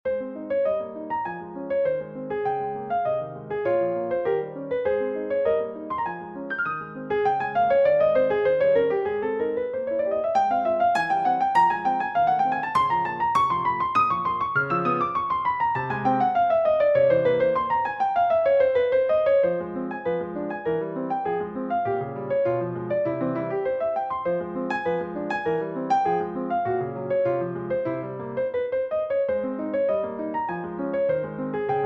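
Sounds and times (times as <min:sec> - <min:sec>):
piano: 0:00.0 - 0:31.8.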